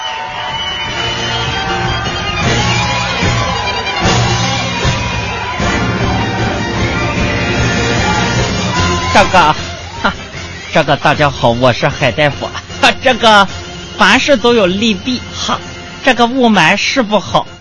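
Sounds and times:
crowd applauding: 0.0 - 10.7
shouts and whoops: 0.0 - 10.7
speech: 9.2 - 17.5.

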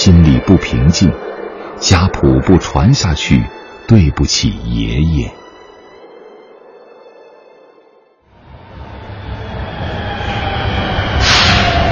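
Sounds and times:
Shanghai metro train arriving at Shanghai Library station: 0.0 - 11.8
speech: 0.1 - 5.4.

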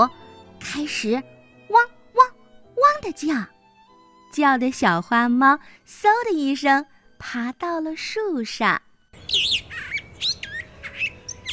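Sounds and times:
speech: 0.0 - 1.9, 3.0 - 3.6, 4.3 - 9.6
magpie chattering call: 9.2 - 11.5.

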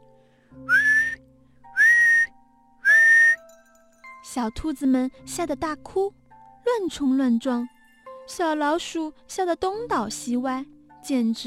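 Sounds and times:
shrill whistle blasts: 0.7 - 1.2, 1.8 - 3.4
speech: 4.4 - 11.4.

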